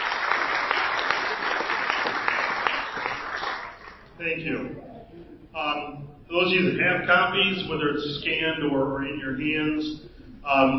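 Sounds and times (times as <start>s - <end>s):
audience applause: 0.0s - 4.1s
speech: 4.2s - 10.7s.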